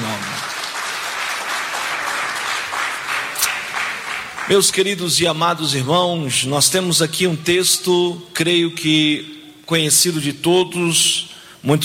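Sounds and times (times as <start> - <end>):
audience applauding with joyful clapping: 0.0 - 5.2
speech: 4.5 - 11.8.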